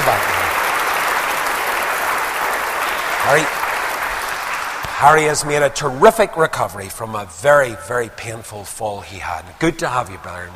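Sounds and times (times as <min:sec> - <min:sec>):
audience clapping: 0:00.0 - 0:06.0
speech: 0:03.3 - 0:03.6, 0:05.0 - 0:10.5.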